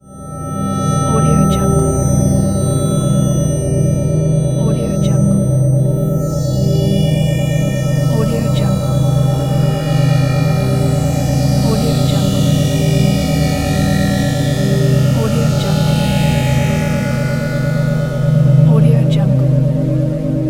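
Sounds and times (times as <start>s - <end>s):
futuristic ambient music: 0.0s - 20.4s.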